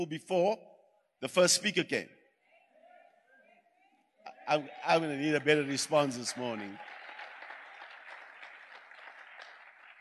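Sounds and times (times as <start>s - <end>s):
speech: 0.0s - 2.2s, 4.5s - 6.9s
light scattered audience clapping: 5.4s - 9.9s.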